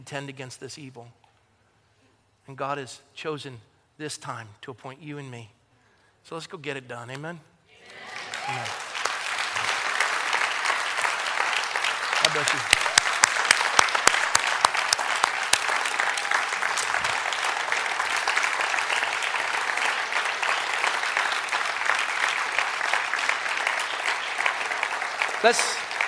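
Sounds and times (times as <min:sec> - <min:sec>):
speech: 0:00.0 - 0:01.2, 0:02.5 - 0:05.6, 0:06.2 - 0:08.8, 0:12.3 - 0:12.9, 0:25.4 - 0:25.8
audience clapping and applauding: 0:07.8 - 0:26.0.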